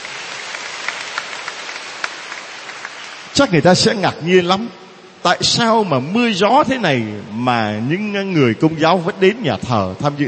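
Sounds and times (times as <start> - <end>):
audience applause: 0.0 - 3.4
speech: 3.3 - 10.2.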